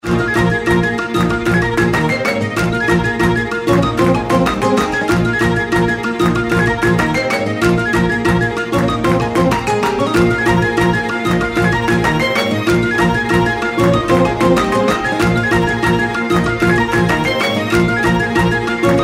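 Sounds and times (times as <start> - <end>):
belly dance music ringtone: 0.1 - 19.0.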